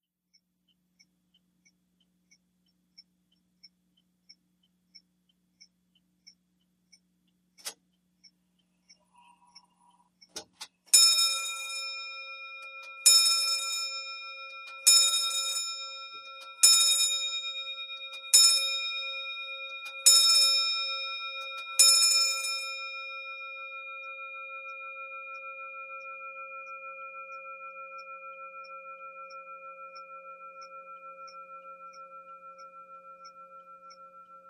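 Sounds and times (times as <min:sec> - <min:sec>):
1820s mantle clock ticking: 0:00.3 - 0:34.4
1820s mantle clock striking: 0:10.9 - 0:34.4.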